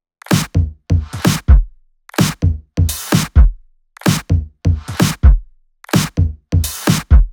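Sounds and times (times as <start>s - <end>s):
drum kit at 128 BPM: 0.3s - 1.6s, 2.2s - 3.5s, 4.1s - 7.3s.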